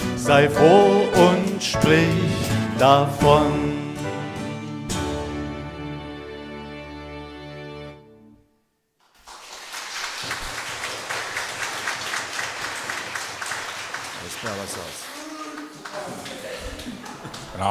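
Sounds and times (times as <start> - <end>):
speech: 0.2 - 3.8, 17.6 - 17.7
audience clapping: 9.0 - 17.7.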